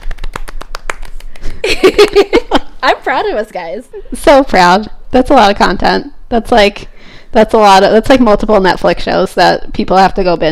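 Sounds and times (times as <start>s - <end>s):
small group clapping: 0.0s - 2.4s
speech: 1.7s - 10.4s.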